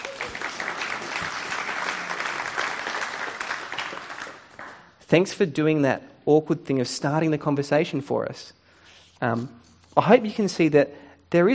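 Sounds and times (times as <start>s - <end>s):
audience clapping: 0.0s - 5.0s
speech: 5.1s - 8.6s, 9.2s - 11.5s.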